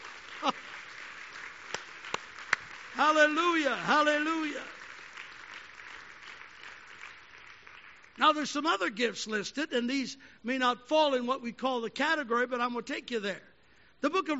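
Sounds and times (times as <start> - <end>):
audience clapping hands: 0.0 - 8.4
speech: 0.4 - 0.6, 3.0 - 4.8, 8.2 - 14.3.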